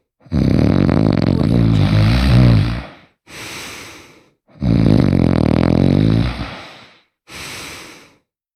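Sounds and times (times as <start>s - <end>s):
cartoon snoring: 0.2s - 3.1s, 4.6s - 6.7s.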